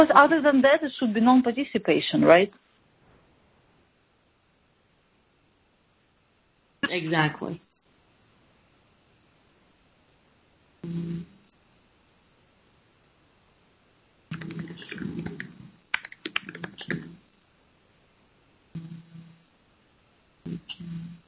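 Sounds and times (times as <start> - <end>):
speech: 0.0 - 2.6, 6.9 - 7.7
faint computer keyboard typing: 14.3 - 17.1.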